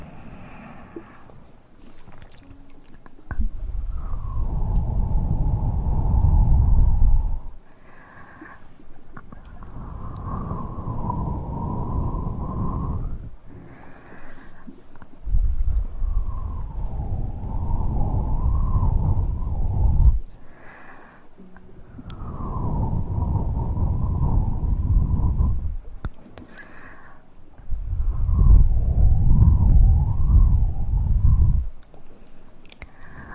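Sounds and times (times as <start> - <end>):
thin wavering hum: 0.0 - 20.6, 21.2 - 31.8
breathy mouth rumble: 0.0 - 32.2
mouth clicks and smacks: 2.0 - 3.6, 8.8 - 10.4, 14.6 - 15.9, 31.7 - 33.3.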